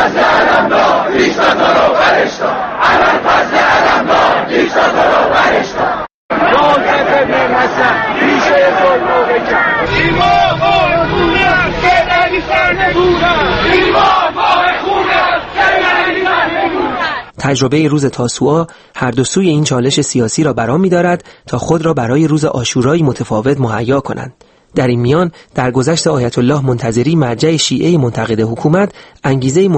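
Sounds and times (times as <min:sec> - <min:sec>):
large street crowd chanting slogans: 0:00.0 - 0:17.3
speech: 0:17.5 - 0:29.7.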